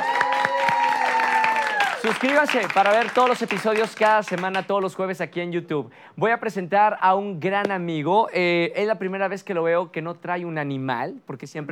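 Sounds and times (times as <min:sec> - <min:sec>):
audience applause: 0:00.0 - 0:04.7
speech: 0:02.0 - 0:11.7.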